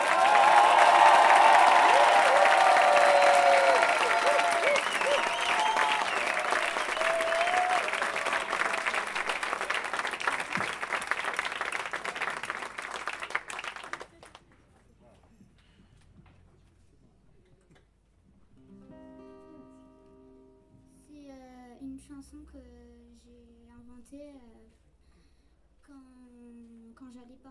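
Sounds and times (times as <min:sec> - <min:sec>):
audience applauding loudly: 0:00.0 - 0:14.4.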